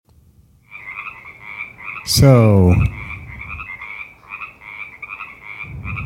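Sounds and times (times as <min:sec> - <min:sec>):
frogs croaking: 0:00.6 - 0:06.0
speech: 0:02.1 - 0:03.0
low rumbling noise: 0:02.1 - 0:03.8, 0:05.6 - 0:06.0.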